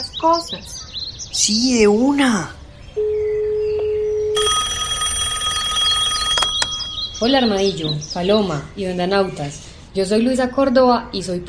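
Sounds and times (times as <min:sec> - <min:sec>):
speech: 0:00.2 - 0:03.1, 0:07.2 - 0:11.4
low-pitched phone tone: 0:03.0 - 0:07.8
telephone ringing: 0:03.0 - 0:07.9.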